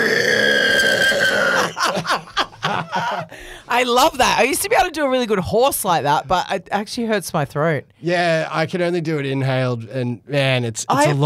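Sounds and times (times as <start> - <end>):
person imitating a pig squeal: 0.0 - 1.7
laughter: 1.6 - 3.5
speech: 3.8 - 11.2.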